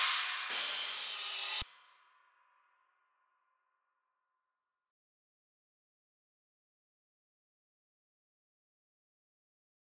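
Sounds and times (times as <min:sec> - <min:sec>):
drums: 0:00.0 - 0:01.9.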